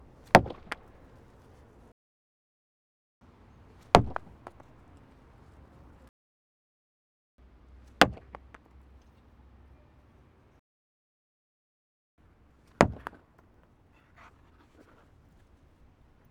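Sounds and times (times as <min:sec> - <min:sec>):
outdoor hockey puck hitting boards: 0:00.3 - 0:00.9, 0:04.0 - 0:05.0, 0:08.0 - 0:08.5, 0:12.7 - 0:13.4.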